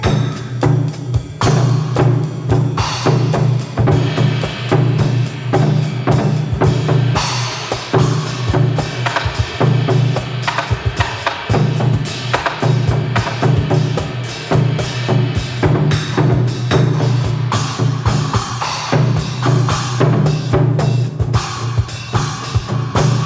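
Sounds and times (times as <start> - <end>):
drums: 0.0 - 23.2.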